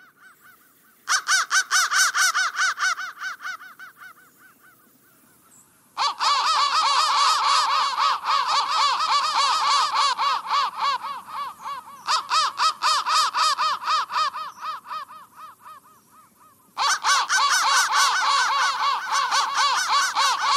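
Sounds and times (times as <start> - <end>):
crow harsh cawing: 0.0 - 20.5.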